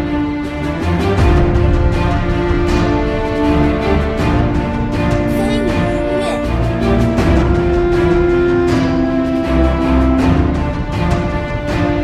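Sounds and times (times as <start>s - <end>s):
grand epic boss music: 0.0s - 12.0s.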